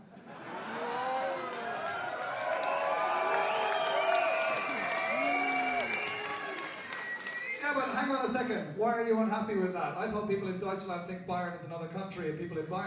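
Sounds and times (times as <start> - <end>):
audience booing: 0.5 - 8.0
speech: 8.5 - 12.8.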